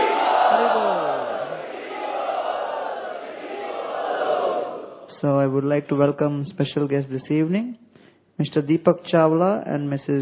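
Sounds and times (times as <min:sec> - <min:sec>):
audience chanting loudly in gratitude after a presentation: 0:00.0 - 0:05.2
speech: 0:05.2 - 0:07.8, 0:08.4 - 0:10.2.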